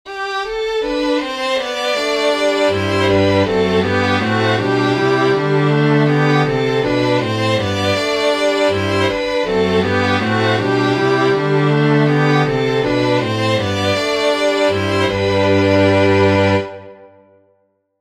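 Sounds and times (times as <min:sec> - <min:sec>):
canon in inversion and retrograde: 0:00.1 - 0:17.4.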